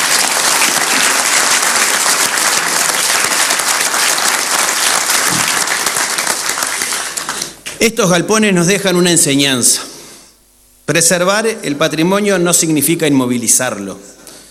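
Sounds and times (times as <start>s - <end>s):
audience applause: 0.0s - 7.6s
speech: 7.8s - 9.9s, 10.9s - 14.2s.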